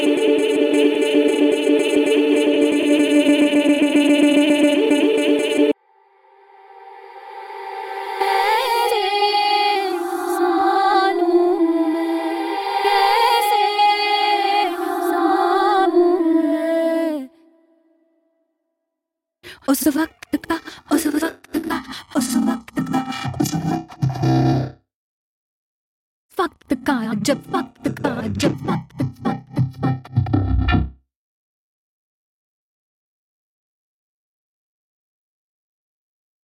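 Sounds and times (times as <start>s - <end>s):
electronic Indian vocal textures: 0.0s - 17.3s, 19.9s - 24.7s, 26.8s - 30.7s.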